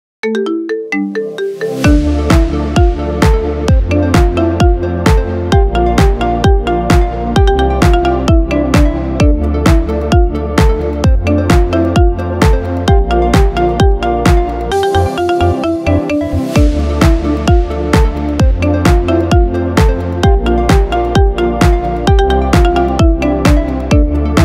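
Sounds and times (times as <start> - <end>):
iPhone marimba ringtone: 0.2 - 24.4.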